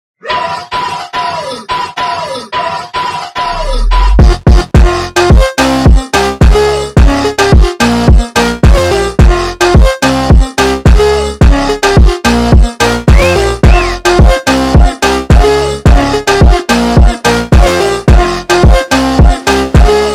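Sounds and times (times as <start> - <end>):
slowed funk music: 3.8 - 20.1.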